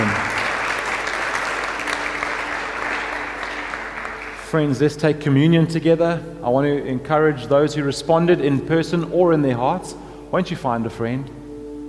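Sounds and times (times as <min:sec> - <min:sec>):
congregation applauding in church: 0:00.0 - 0:05.1
speech: 0:04.5 - 0:11.4.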